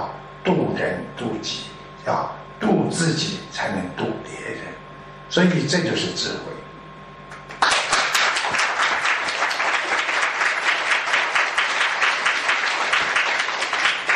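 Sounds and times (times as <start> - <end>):
speech: 0.4 - 6.6
audience applause: 7.5 - 14.1.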